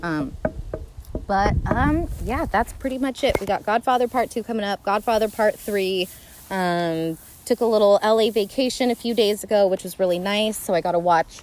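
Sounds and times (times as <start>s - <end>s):
speech: 0.0s - 0.5s, 1.3s - 11.4s
knocking on wood: 0.4s - 2.1s.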